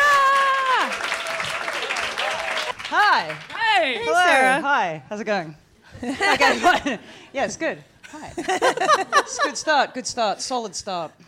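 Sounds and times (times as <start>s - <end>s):
person whooping: 0.0s - 1.0s
audience clapping at a comedy show: 0.0s - 4.2s
speech: 3.2s - 11.2s
laughter: 6.0s - 7.2s, 8.1s - 10.0s.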